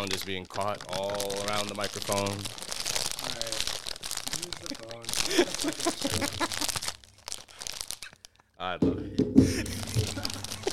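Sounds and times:
speech: 0.0 - 2.6, 4.4 - 6.9, 8.6 - 9.8
loud crunching of chips: 0.0 - 8.3, 9.7 - 10.7
laughter: 4.5 - 6.8, 9.4 - 10.7.

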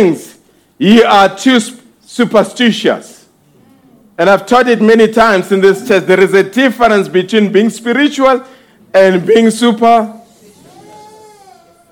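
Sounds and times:
speech: 0.0 - 3.2, 4.2 - 10.2
low steady noise: 0.0 - 11.9
cat meowing: 10.7 - 11.9.

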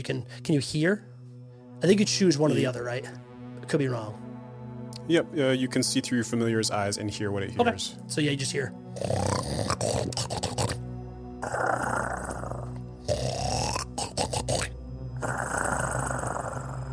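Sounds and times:
speech: 0.0 - 1.1, 1.8 - 4.2, 5.1 - 10.8, 11.4 - 12.2
loud snorting snores: 9.0 - 10.8, 11.4 - 16.9.

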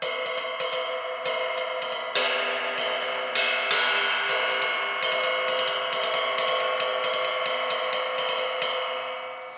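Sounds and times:
cymbal being played: 0.0 - 9.5.

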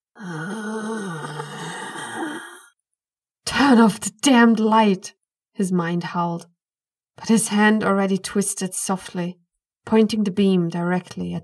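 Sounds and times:
voice imitating a creature's angry moan: 0.2 - 2.7
speech: 3.7 - 6.5, 7.2 - 11.4.

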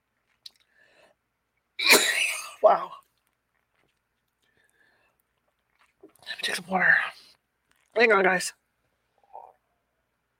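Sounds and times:
person coughing from allergies: 1.8 - 2.7
speech: 2.7 - 3.0, 6.4 - 7.1, 8.0 - 8.6.

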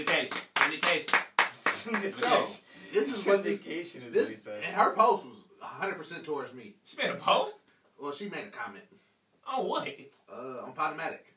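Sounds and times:
clapping: 0.0 - 2.4
speech: 1.8 - 11.3.

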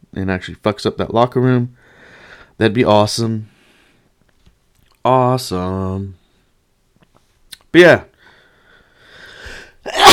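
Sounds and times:
speech: 0.2 - 1.9, 2.6 - 3.5, 5.0 - 6.2, 7.7 - 8.1
person sneezing: 9.5 - 10.1.

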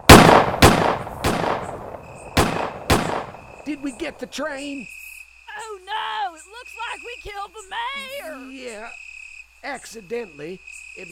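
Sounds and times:
guns firing: 0.0 - 4.3
speech: 3.7 - 5.0, 5.9 - 9.0, 9.6 - 11.1.

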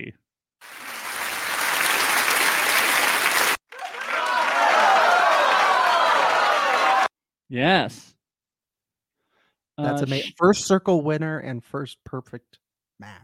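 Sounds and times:
audience applause: 0.6 - 7.1
speech: 7.5 - 8.1, 9.8 - 13.2.

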